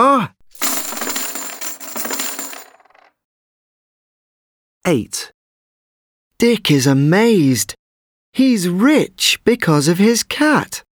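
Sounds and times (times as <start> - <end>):
gold coins pouring and clinking: 0.5 - 3.1
speech: 4.9 - 5.3, 6.4 - 7.8, 8.4 - 10.9.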